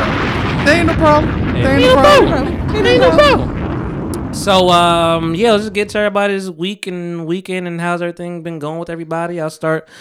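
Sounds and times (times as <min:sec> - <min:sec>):
bomb-drop effect falling whistle into loud burst: 0:00.0 - 0:06.0
steady rumbling noise: 0:00.0 - 0:06.3
speech: 0:00.7 - 0:03.5, 0:04.4 - 0:09.9.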